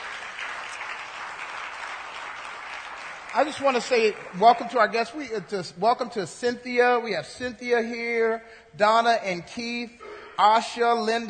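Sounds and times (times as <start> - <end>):
audience applause: 0.0 - 4.6
speech: 3.3 - 11.2.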